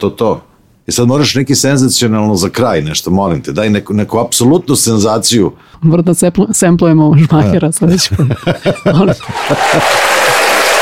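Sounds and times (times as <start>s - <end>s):
speech: 0.0s - 10.3s
people chuckling: 7.9s - 10.5s
audience applause: 9.2s - 10.7s.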